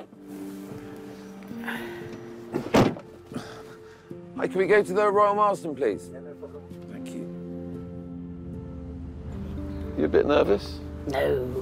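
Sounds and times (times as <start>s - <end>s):
taxi door shutting: 2.5s - 3.2s
speech: 4.4s - 6.3s, 10.0s - 11.6s.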